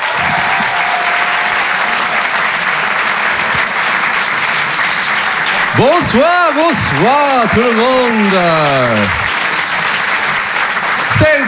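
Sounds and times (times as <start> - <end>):
audience applause: 0.0 - 11.4
speech: 5.8 - 9.2.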